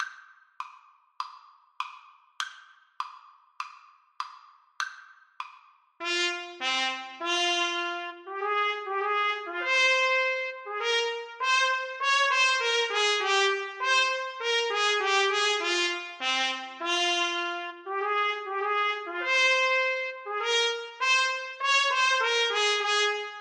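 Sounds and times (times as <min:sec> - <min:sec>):
trumpet duet: 0:06.0 - 0:23.3.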